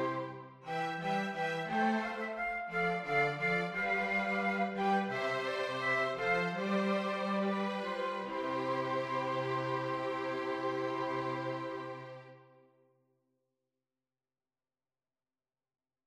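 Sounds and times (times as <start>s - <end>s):
hornpipe tune for flexible instrumentation: 0.0s - 12.2s.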